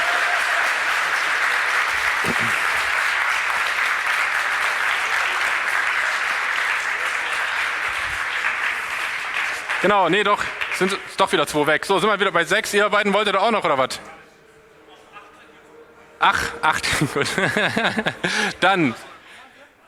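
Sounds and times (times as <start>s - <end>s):
audience applause: 0.0s - 11.4s, 16.9s - 18.8s
laughter: 1.8s - 3.8s, 14.8s - 19.6s
speech: 2.2s - 2.6s, 9.8s - 14.2s, 16.2s - 19.1s.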